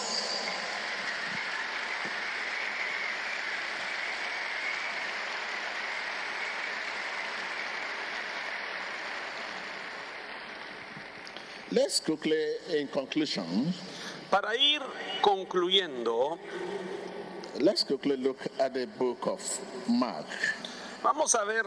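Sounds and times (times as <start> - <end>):
audience applause: 0.0 - 12.0
speech: 11.7 - 16.9, 17.6 - 21.6.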